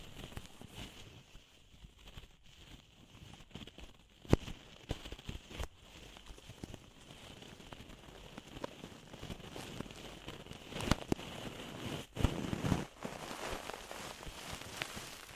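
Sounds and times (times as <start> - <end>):
ear cleaning crackling, scraping and rustling close to the microphone: 3.0 - 15.3
sharp pops and clicks: 3.4 - 15.3
faint steady high hiss: 12.0 - 15.3.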